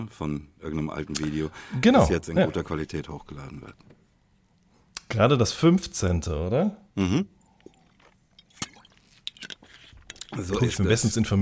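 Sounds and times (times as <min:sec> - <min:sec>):
speech: 0:00.0 - 0:03.9, 0:05.1 - 0:07.4, 0:10.3 - 0:11.4
two people drinking at the same time: 0:07.3 - 0:10.8.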